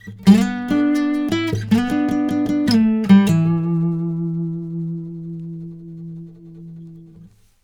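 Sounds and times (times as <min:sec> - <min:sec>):
blues guitar lick: 0:00.0 - 0:07.5.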